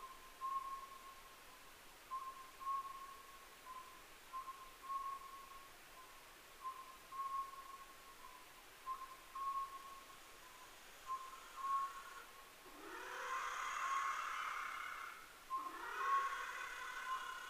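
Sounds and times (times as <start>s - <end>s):
Oriental scops owl calling: 0.0s - 1.2s, 2.1s - 10.1s, 11.0s - 17.4s
faint hiss: 0.0s - 17.4s.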